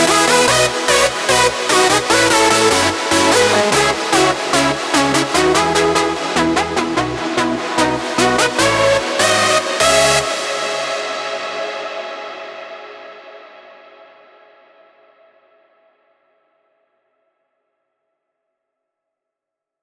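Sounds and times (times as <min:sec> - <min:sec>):
modern hands up and hardstyle synth lead: 0:00.0 - 0:11.0.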